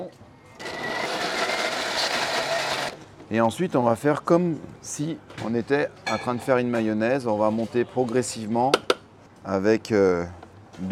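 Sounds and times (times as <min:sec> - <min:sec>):
blender mixing bread crumb paste: 0:00.6 - 0:03.0
speech: 0:03.3 - 0:10.9.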